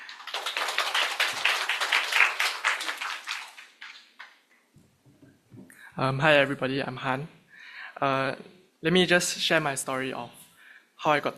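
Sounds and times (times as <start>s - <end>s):
audience applause welcoming a speaker at a baptism class gathering: 0.0s - 4.4s
speech: 6.0s - 7.4s, 8.0s - 10.4s, 11.0s - 11.3s.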